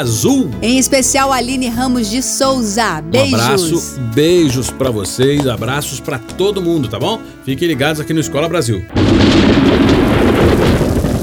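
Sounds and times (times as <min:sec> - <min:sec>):
speech: 0:00.0 - 0:10.0
rain falling: 0:09.0 - 0:11.2.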